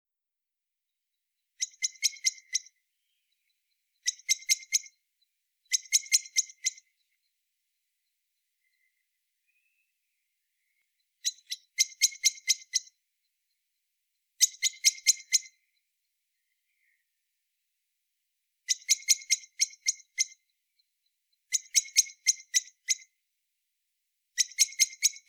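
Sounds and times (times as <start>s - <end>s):
common blackbird chink calls: 1.6s - 5.0s, 5.7s - 7.2s, 8.6s - 12.9s, 14.4s - 17.1s, 18.7s - 20.5s, 21.4s - 23.1s, 24.4s - 25.2s.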